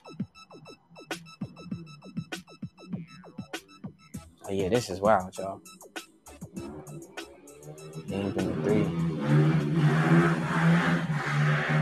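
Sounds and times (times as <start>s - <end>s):
speech: 4.5s - 5.8s, 8.0s - 10.9s
cars driving fast as if racing: 6.6s - 11.8s.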